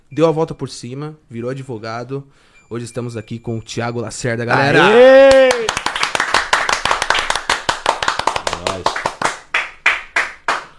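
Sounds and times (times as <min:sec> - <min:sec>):
speech: 0:00.1 - 0:05.6
hand clapping: 0:05.3 - 0:10.7.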